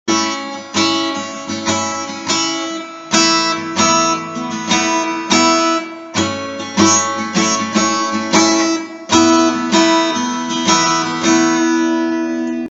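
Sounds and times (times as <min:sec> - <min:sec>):
guitar: 0:00.0 - 0:12.7.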